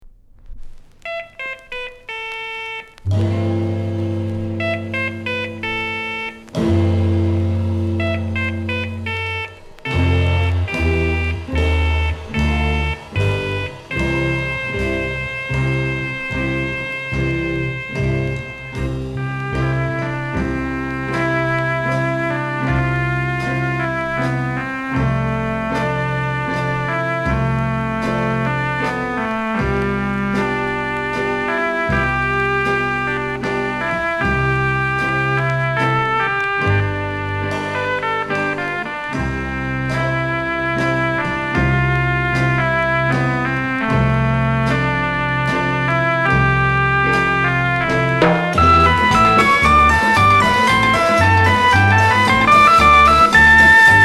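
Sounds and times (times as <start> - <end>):
piano: 0.0 - 54.0.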